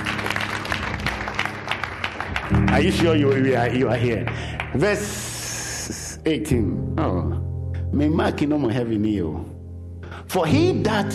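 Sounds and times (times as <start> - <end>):
audience clapping hands: 0.0 - 5.7
speech: 2.5 - 5.3, 6.2 - 9.6, 10.3 - 11.1.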